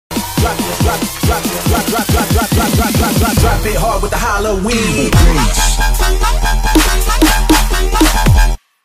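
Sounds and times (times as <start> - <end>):
bass drop: 0.1 - 8.6.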